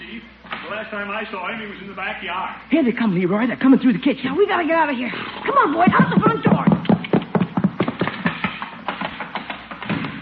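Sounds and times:
speech: 0.7 - 6.8
horse hooves clattering across a hard indoor floor: 5.4 - 10.1.

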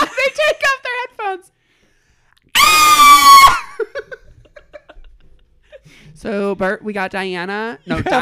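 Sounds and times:
person imitating a superhero's sonic scream: 2.6 - 3.8
speech: 6.2 - 8.1.

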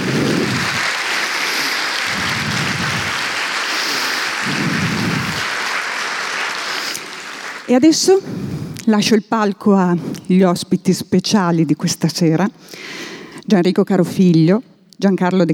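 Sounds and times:
audience applause: 0.0 - 7.9
speech: 7.7 - 15.5.

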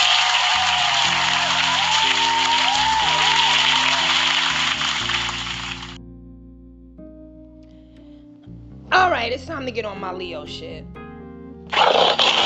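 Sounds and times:
round of applause: 0.0 - 6.0
low musical tone: 1.1 - 11.7
speech: 9.3 - 11.0.

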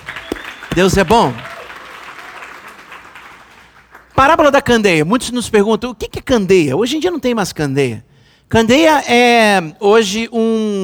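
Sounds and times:
audience applause: 0.0 - 4.3
speech: 0.8 - 1.5, 4.2 - 10.8.

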